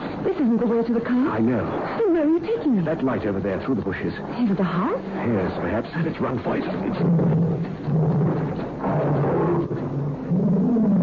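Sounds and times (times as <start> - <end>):
speech: 0.4 - 9.7
pet tiger roaring: 6.8 - 11.0.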